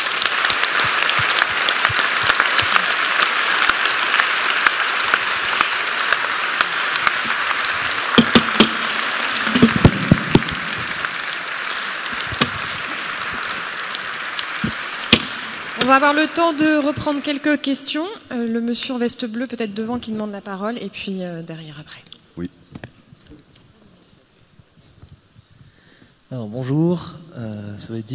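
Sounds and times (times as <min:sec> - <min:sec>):
audience applause: 0:00.0 - 0:18.1
speech: 0:15.9 - 0:22.5, 0:26.3 - 0:28.1.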